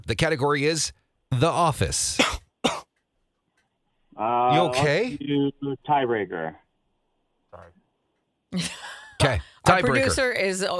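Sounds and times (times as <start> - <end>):
speech: 0.0 - 2.4, 4.2 - 6.6, 8.5 - 10.7
cough into a microphone: 2.2 - 3.0.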